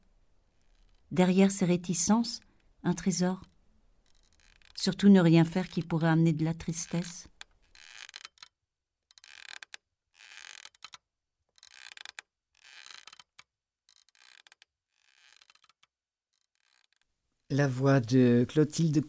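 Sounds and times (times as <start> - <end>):
swing creaking: 0.6 - 1.1, 4.0 - 8.5, 9.1 - 17.0
speech: 1.1 - 3.5, 4.8 - 7.3, 17.5 - 19.0.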